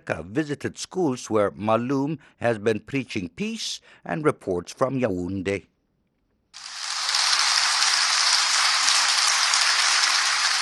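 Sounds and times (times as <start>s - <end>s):
speech: 0.0s - 5.7s
children applauding: 6.6s - 10.6s.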